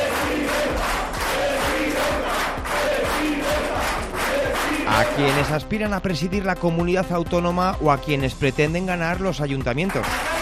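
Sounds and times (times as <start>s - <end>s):
party members applauding: 0.0s - 5.6s, 9.7s - 10.4s
party members cheering: 0.0s - 5.6s, 9.9s - 10.4s
speech: 5.2s - 10.3s.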